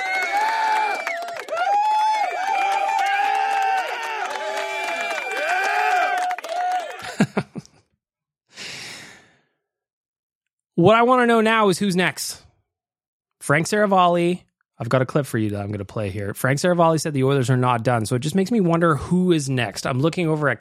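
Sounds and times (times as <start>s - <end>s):
round of applause: 0.0s - 7.5s
laughter: 6.8s - 7.8s
speech: 10.8s - 12.4s, 13.5s - 20.5s.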